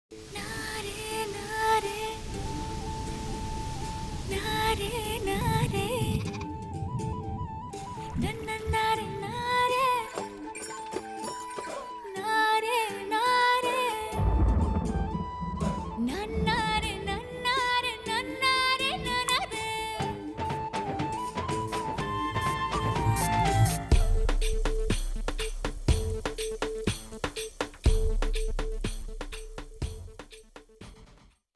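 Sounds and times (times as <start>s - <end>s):
background music song: 0.1s - 31.3s.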